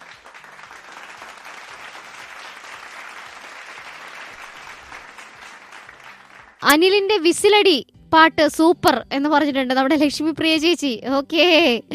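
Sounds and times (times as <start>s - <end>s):
audience applause after a folk song performance: 0.0s - 6.6s
speech: 6.6s - 11.9s.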